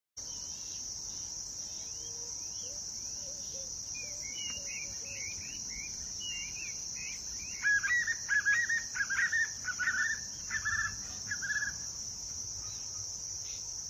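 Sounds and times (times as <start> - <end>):
White-eared puffbird song: 1.8 - 11.8.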